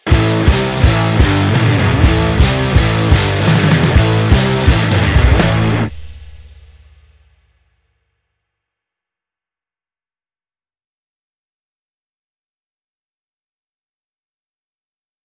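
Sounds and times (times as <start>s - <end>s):
doomsday rock sting: 0.0s - 7.5s.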